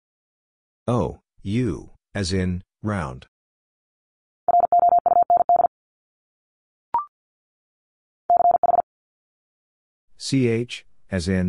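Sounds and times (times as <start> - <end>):
speech: 0.9 - 3.3, 10.2 - 11.4
fast Morse code tones: 4.5 - 5.7, 8.3 - 8.8.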